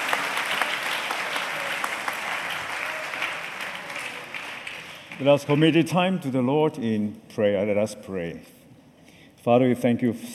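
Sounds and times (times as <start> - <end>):
church congregation applauding to welcome an archbishop: 0.0 - 6.1
speech: 5.2 - 8.6, 9.4 - 10.3.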